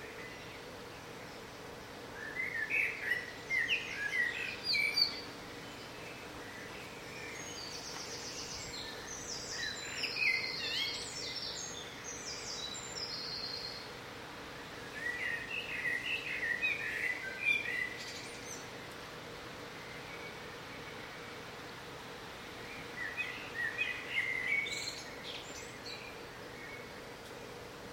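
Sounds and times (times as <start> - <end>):
bird singing: 2.1 - 14.0, 14.8 - 18.9, 19.7 - 21.4, 22.6 - 27.0.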